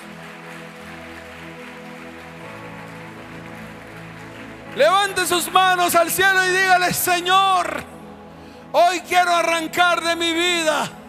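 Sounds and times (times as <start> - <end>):
audience applause: 0.0 - 7.8
speech: 4.8 - 8.0, 8.7 - 11.0.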